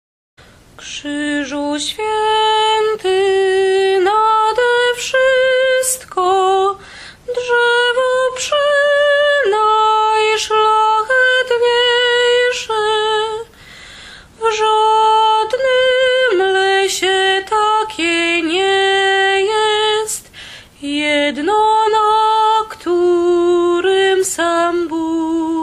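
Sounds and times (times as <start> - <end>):
soprano voice: 0.7 - 13.7, 14.3 - 25.6.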